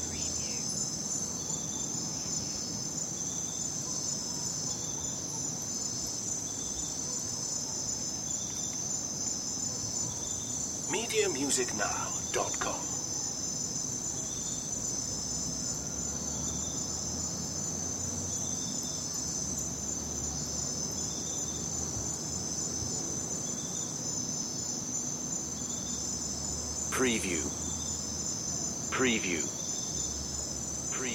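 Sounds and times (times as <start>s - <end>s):
crickets trilling: 0.0s - 31.1s
speech: 10.9s - 12.9s, 29.0s - 29.6s.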